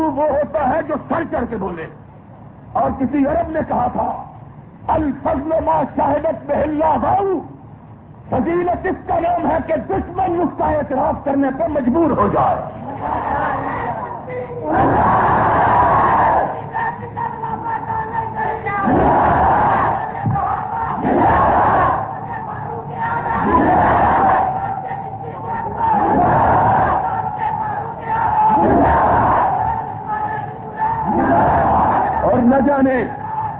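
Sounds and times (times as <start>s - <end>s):
speech: 0.8s - 2.1s, 2.8s - 7.5s, 8.3s - 15.7s
large crowd chanting slogans: 12.6s - 33.5s.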